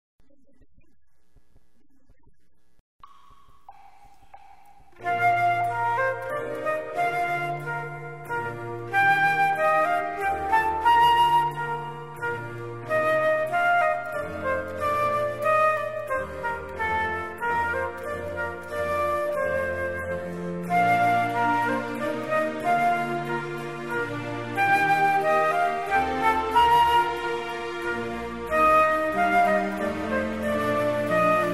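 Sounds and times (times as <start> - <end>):
minuet: 3.8 - 31.5.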